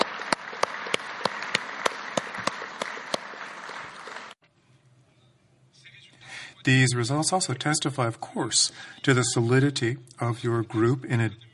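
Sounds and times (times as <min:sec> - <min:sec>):
crowd applauding: 0:00.0 - 0:04.4
speech: 0:06.6 - 0:11.5.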